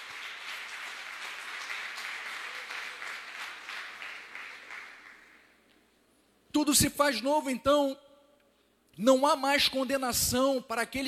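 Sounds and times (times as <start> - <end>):
audience applauding: 0.0 - 5.6
speech: 6.6 - 8.0, 9.0 - 11.0.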